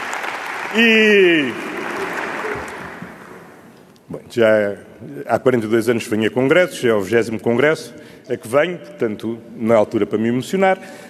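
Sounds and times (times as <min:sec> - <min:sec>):
applause at a party congress: 0:00.0 - 0:03.7
speech: 0:00.7 - 0:01.6, 0:04.3 - 0:11.0.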